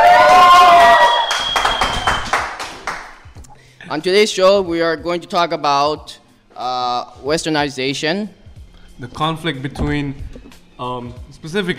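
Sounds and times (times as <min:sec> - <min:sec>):
live studio audience applauding at a youth radio show: 0:00.7 - 0:03.3
speech: 0:03.9 - 0:08.4, 0:09.0 - 0:11.7.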